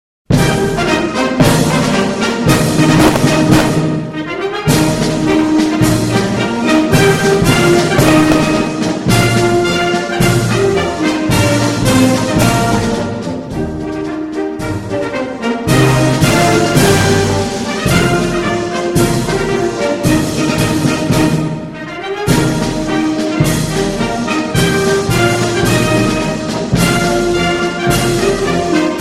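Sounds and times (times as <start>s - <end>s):
Chinese parade: 0.3s - 29.0s.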